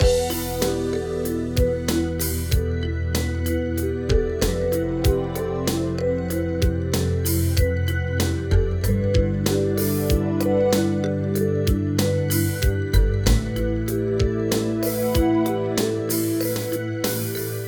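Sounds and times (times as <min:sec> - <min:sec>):
alternative music loop: 0:00.0 - 0:17.6.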